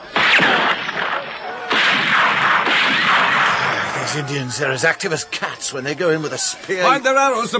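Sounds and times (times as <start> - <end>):
rifle gunfire: 0.1 - 4.0
speech: 4.1 - 7.5.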